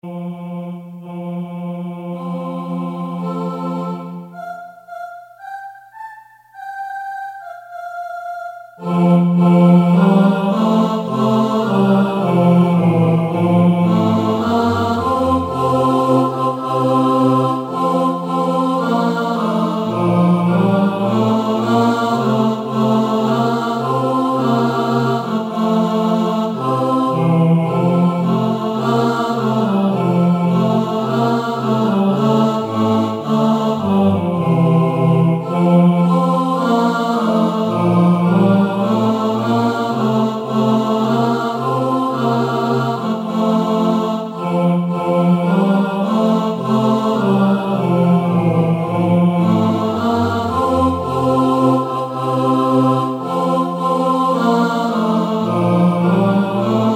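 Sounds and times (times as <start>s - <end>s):
tenor singing: 0.0s - 56.9s.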